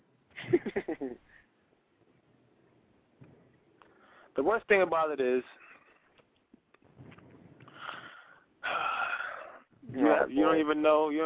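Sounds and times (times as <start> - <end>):
speech: 4.4 - 5.6, 10.2 - 11.2
heavy raspy wheezing breathing: 7.6 - 9.7.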